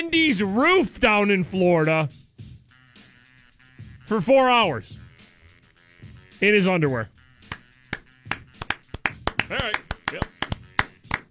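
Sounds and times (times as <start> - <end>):
speech: 0.0 - 2.2, 4.1 - 5.0, 6.4 - 7.2
clapping: 7.4 - 11.3.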